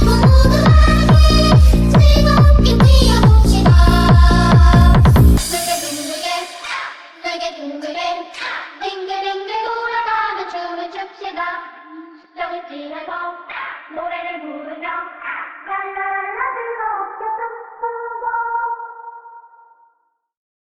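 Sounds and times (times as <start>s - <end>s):
techno remix: 0.0s - 7.2s.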